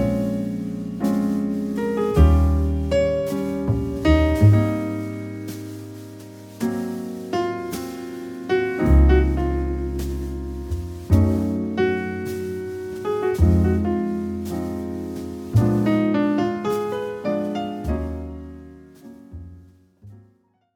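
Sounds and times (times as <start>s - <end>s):
piano trio playing: 0.0s - 20.3s.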